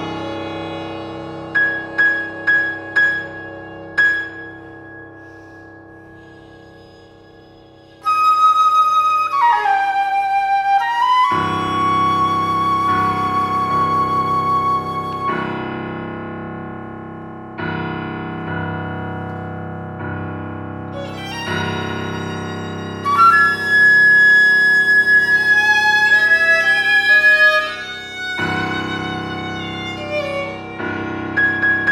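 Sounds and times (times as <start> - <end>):
violin: 0.0 - 16.7, 20.8 - 31.9
piano: 0.0 - 31.9
flute: 1.8 - 16.2, 21.0 - 31.9.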